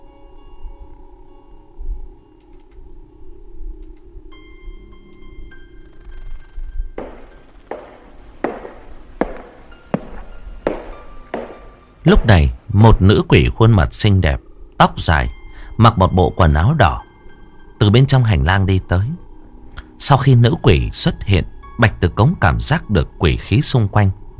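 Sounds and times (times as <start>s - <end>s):
low eerie droning music: 0.0s - 24.3s
footsteps in a corridor: 7.0s - 13.0s
speech: 12.1s - 17.0s, 17.8s - 19.2s, 20.0s - 24.3s.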